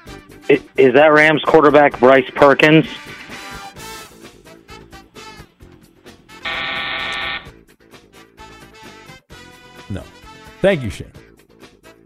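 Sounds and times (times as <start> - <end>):
speech: 0.5 - 3.2, 10.6 - 11.2
telephone dial tone: 6.5 - 7.5.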